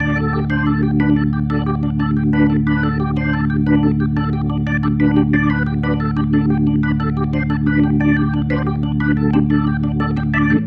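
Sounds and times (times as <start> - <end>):
organ pattern: 0.0 - 10.6.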